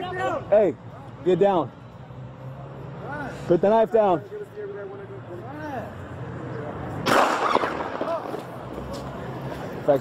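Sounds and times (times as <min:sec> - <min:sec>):
steady noise: 0:00.0 - 0:10.0
speech: 0:00.5 - 0:01.8, 0:03.3 - 0:05.0, 0:09.8 - 0:10.0
gunshots fired by Fresno police on a bodycam: 0:07.0 - 0:08.4.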